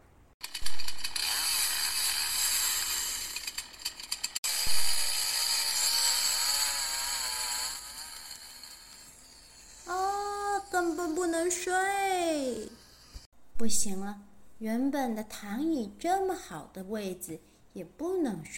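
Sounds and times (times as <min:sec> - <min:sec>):
wood being sawed with a buzzing saw: 0:00.4 - 0:13.3
speech: 0:13.7 - 0:18.5.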